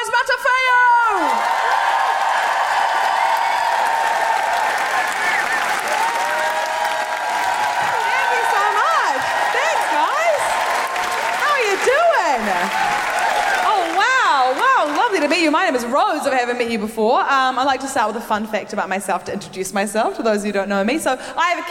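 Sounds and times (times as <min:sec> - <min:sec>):
audience applause: 0:01.0 - 0:15.8
speech: 0:15.8 - 0:21.6.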